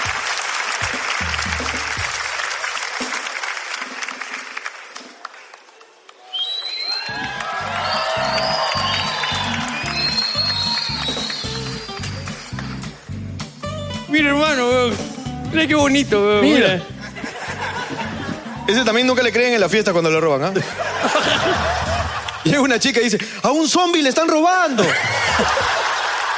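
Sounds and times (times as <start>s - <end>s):
rhythmic pounding beat: 0.0s - 3.4s, 7.1s - 19.9s, 25.0s - 26.2s
crowd applause: 0.0s - 13.2s, 20.8s - 22.5s, 24.8s - 26.3s
cheering and whistles: 6.1s - 12.6s
speech: 15.6s - 16.9s, 18.7s - 21.7s, 22.5s - 25.8s
laughter: 16.4s - 19.2s, 20.5s - 22.5s, 24.8s - 26.3s.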